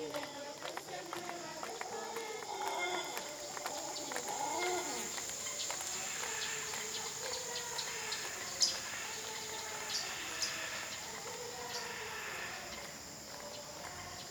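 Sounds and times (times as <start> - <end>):
steady high jungle insect drone: 0.0 - 14.3
jungle chirps and short calls: 3.0 - 12.9.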